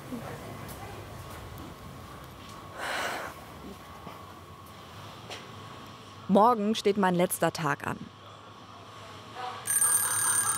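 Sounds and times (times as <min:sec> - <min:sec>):
speech: 0:06.3 - 0:08.2
alarm clock ringing: 0:09.7 - 0:10.5.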